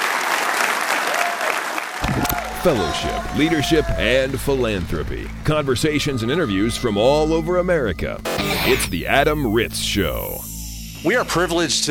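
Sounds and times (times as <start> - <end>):
audience round of applause: 0.0 - 3.7
speech: 2.6 - 11.9.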